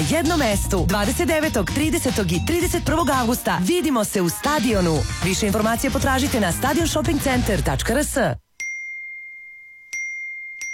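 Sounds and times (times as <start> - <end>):
speech: 0.0 - 8.4
phone message notification dings: 8.6 - 10.7.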